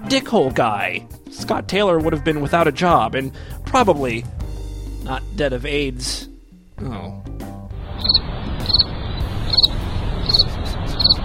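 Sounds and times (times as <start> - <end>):
speech: 0.1 - 4.4, 5.0 - 7.0
crickets chirping: 8.0 - 11.2.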